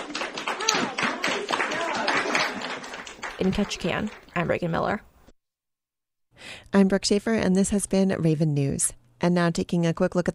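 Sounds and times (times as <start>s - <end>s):
crowd applauding: 0.0s - 4.6s
speech: 3.4s - 5.1s, 6.7s - 10.3s.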